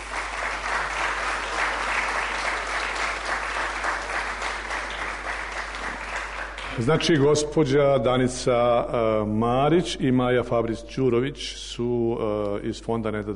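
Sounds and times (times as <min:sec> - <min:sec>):
audience applause at a prize ceremony: 0:00.0 - 0:07.1
speech: 0:06.8 - 0:13.3.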